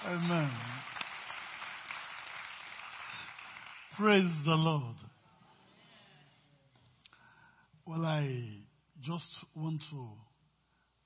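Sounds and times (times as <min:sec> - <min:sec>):
speech: 0:00.0 - 0:00.7, 0:04.0 - 0:05.1, 0:07.9 - 0:10.3
audience clapping for the choir: 0:00.0 - 0:04.6.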